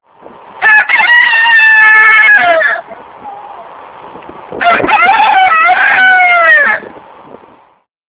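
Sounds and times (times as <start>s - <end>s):
rooster crowing: 0.6s - 3.6s, 4.6s - 7.0s.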